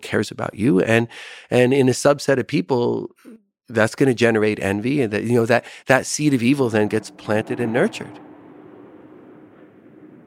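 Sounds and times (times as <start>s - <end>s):
speech: 0.1s - 8.3s
fighter jet roaring overhead: 6.3s - 10.2s.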